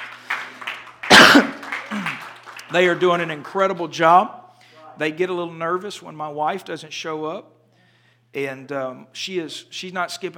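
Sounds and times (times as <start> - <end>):
preacher coughing during a sermon: 1.1 - 2.2
speech: 2.7 - 4.4, 5.0 - 7.6, 8.3 - 10.3.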